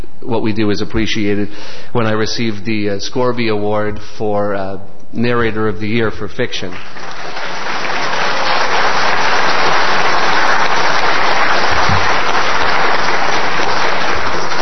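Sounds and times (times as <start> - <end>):
speech: 0.2 - 7.2
audience clapping: 6.6 - 14.5.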